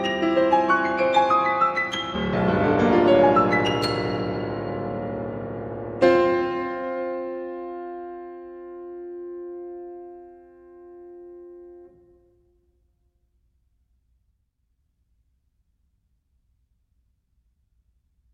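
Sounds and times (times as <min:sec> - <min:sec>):
piano piece: 0:00.0 - 0:12.4.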